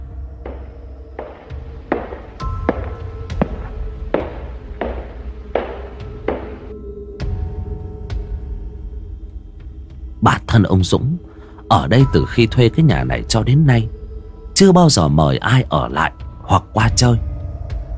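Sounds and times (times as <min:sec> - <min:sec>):
footsteps echoing in a quiet house: 0:00.4 - 0:06.7
speech: 0:10.6 - 0:14.0, 0:14.6 - 0:17.3.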